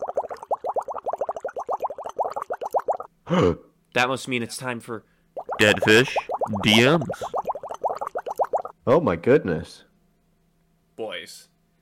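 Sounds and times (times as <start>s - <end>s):
bubbles: 0.0s - 3.1s, 5.4s - 8.7s
speech: 3.3s - 7.4s, 8.8s - 9.9s.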